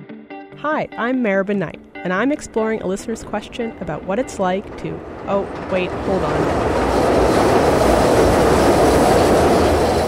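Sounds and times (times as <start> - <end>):
speech: 0.6 - 8.4
elevated L train passing on tracks: 2.2 - 10.0.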